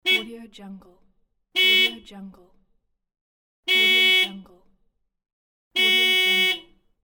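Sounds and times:
car horn: 0:00.0 - 0:00.4, 0:01.6 - 0:02.1, 0:03.6 - 0:04.5, 0:05.7 - 0:07.0.

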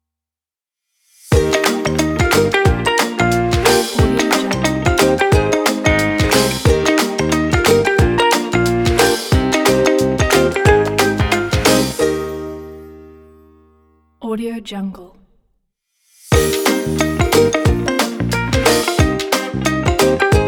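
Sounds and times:
happy upbeat ukulele music: 0:01.3 - 0:13.2, 0:16.4 - 0:20.4.

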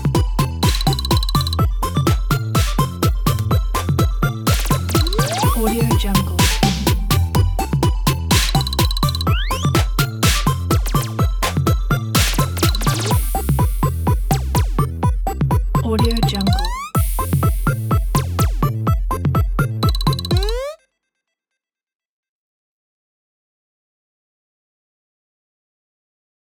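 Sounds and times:
8-bit retro game music: 0:00.0 - 0:20.8.

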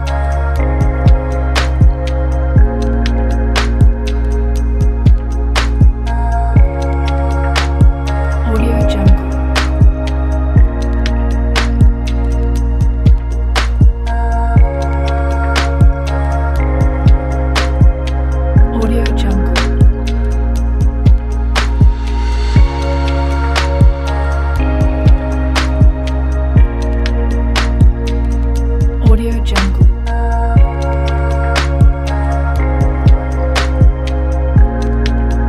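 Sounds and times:
atmospheric modern electronic music: 0:00.0 - 0:35.4.

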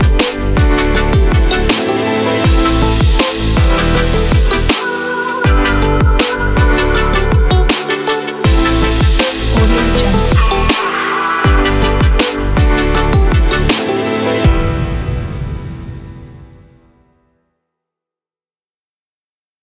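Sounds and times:
future bass music: 0:00.0 - 0:14.4.

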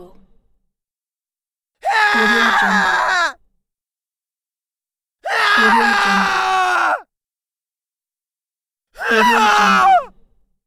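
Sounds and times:
men screaming: 0:01.9 - 0:03.3, 0:05.3 - 0:07.0, 0:09.0 - 0:10.1.

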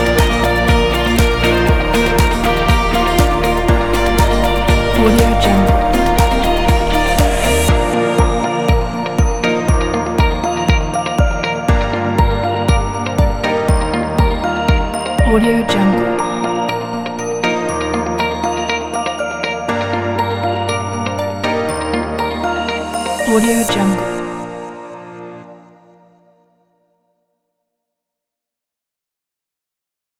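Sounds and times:
atmospheric bright happy corporate guitar music: 0:00.0 - 0:23.4.

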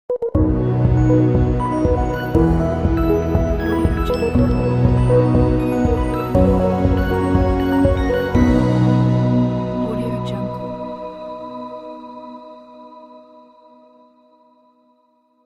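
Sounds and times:
soft logo jingle: 0:00.4 - 0:11.6.

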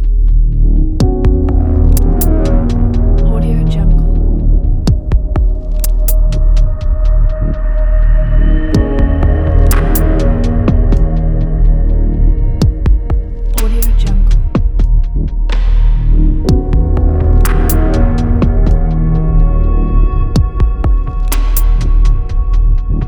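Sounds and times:
cinematic minimal dark tension soundscape: 0:00.0 - 0:23.0.

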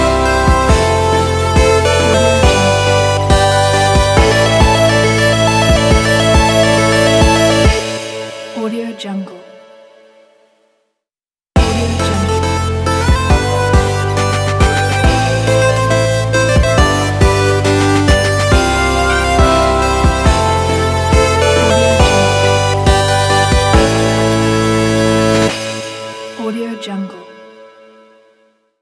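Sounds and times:
epic 8-bit logo jingle: 0:00.0 - 0:08.4, 0:11.6 - 0:26.0.

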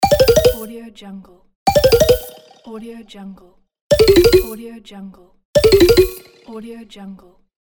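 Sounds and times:
game failure sound: 0:00.0 - 0:00.7, 0:01.7 - 0:02.7, 0:03.9 - 0:04.6, 0:05.6 - 0:06.6.

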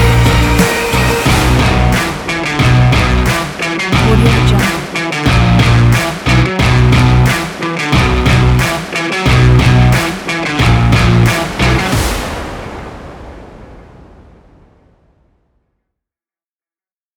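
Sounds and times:
epic rock music: 0:00.0 - 0:12.4.

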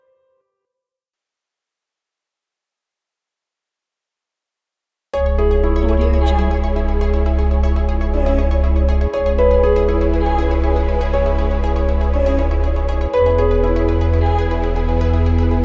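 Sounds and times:
corporate advertising music: 0:05.2 - 0:15.6.

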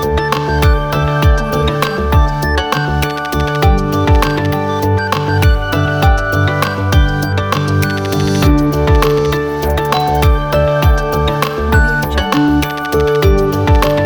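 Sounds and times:
ambient corporate technology music: 0:00.0 - 0:14.0.

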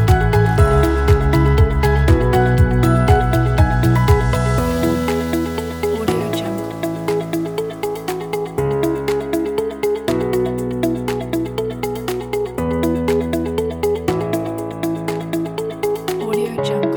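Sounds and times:
motivational corporate music: 0:00.0 - 0:16.9.

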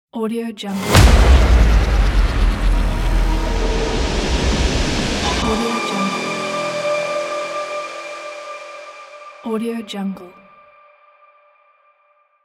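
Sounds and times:
aggressive cinematic logo sting: 0:00.7 - 0:09.5.

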